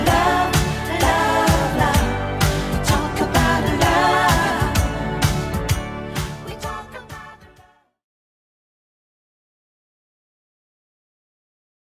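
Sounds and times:
80s style drum machine beat: 0.0 - 7.3.

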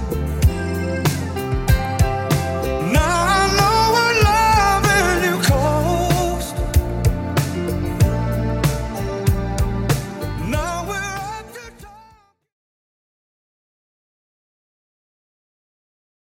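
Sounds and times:
1970s-style Redrum drum machine beat at 95 BPM: 0.0 - 12.1.

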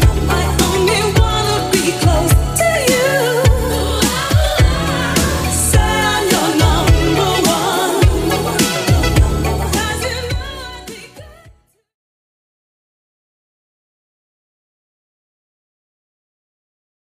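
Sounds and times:
80s style music at 105 BPM: 0.0 - 11.6.

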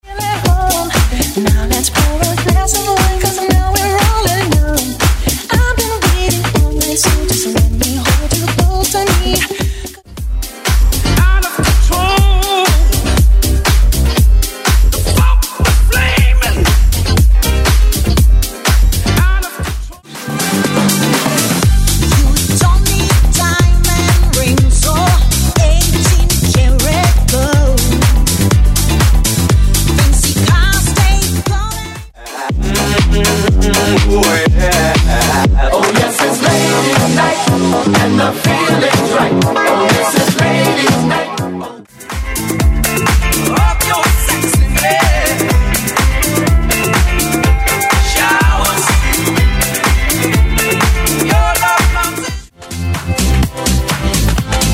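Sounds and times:
funky house music: 0.0 - 54.7.

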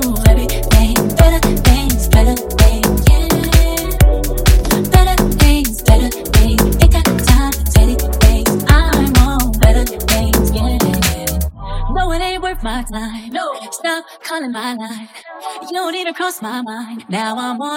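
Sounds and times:
funk house remix at 128 Bpm: 0.0 - 13.0.

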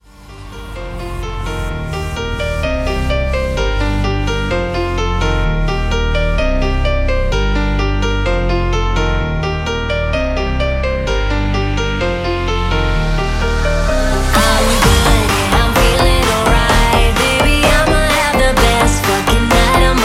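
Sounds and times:
future house music: 0.0 - 9.4, 10.2 - 20.0.

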